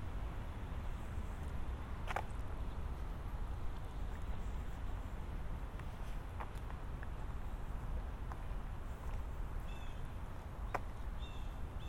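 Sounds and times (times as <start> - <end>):
traffic rumble in Central Park: 0.0 - 11.8
wind in Central Park: 0.0 - 11.8
faint bird chirps in Central Park: 9.7 - 10.1, 11.2 - 11.8.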